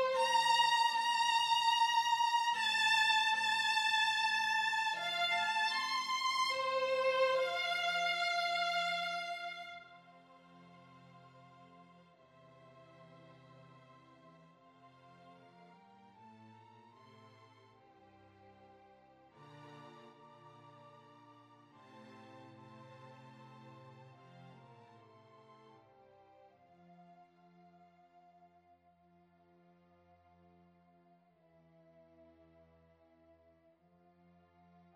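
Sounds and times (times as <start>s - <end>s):
solo violin: 0.0s - 26.6s.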